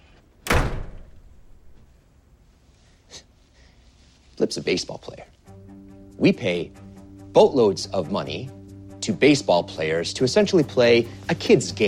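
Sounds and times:
office door being shut: 0.4 - 1.9
speech: 4.4 - 5.4, 6.2 - 6.8, 7.4 - 11.8.

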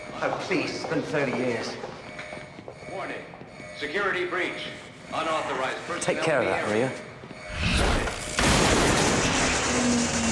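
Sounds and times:
speech: 0.2 - 2.0, 3.0 - 7.0
box on the wall blown up to silence announcements: 8.3 - 9.8.

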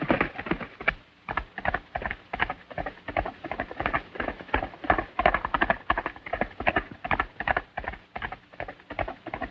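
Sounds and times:
horses galloping as two riders chase each other out of a ravine: 0.0 - 9.4.

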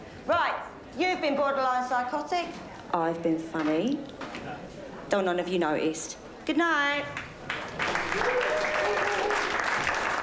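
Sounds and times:
speech: 1.0 - 7.2, 8.1 - 9.0
audience applause at the close of a comedy set: 7.2 - 10.2.

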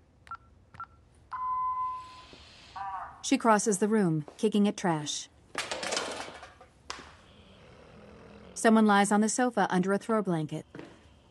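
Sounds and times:
keypad beeps on house alarm console: 0.3 - 2.2
speech: 3.2 - 5.3, 8.6 - 10.8.

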